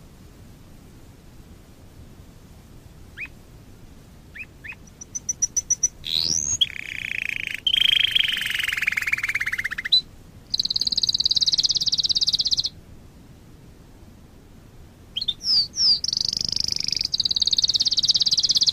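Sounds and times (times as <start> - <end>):
Waterslager canary song: 3.1 - 3.4, 4.2 - 12.8, 15.1 - 18.7.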